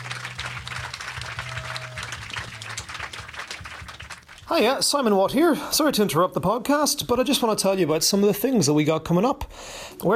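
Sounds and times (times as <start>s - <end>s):
crowd applauding: 0.0s - 5.1s
speech: 4.5s - 10.1s.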